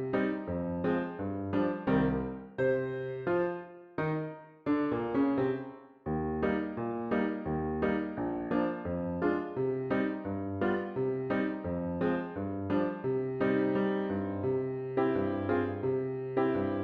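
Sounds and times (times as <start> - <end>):
fast solo piano dance piece: 0.0 - 16.8.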